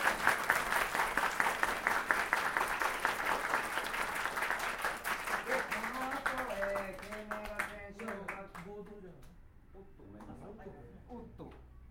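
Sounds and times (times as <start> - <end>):
audience applause: 0.0 - 8.4.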